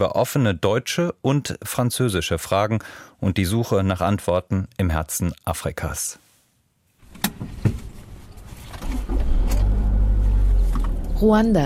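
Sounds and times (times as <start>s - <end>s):
speech: 0.0s - 6.2s, 11.2s - 11.6s
clunks and knocks: 7.0s - 11.2s
car engine driving into the hills of Bisesero, Rwanda: 7.1s - 11.6s.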